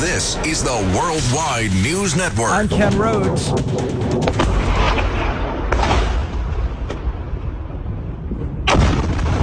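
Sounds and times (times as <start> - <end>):
speech: 0.2 - 4.5
Iranian missile crashing and exploding at the Mufawak Salty Air Base in Jordan: 4.1 - 9.4.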